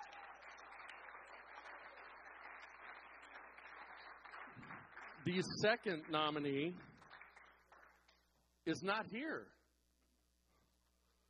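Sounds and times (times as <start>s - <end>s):
audience applause: 0.0s - 8.2s
speech: 5.2s - 6.9s, 8.7s - 9.6s.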